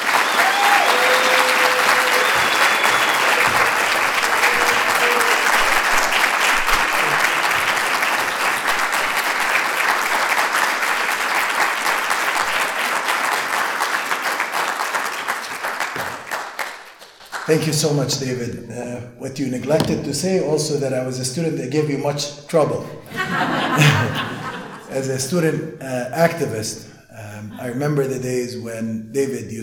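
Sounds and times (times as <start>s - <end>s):
audience applause welcoming a speaker: 0.0s - 17.5s
speech: 17.5s - 24.3s, 25.0s - 26.9s, 27.6s - 29.6s
laughter: 23.0s - 25.2s, 27.2s - 28.2s.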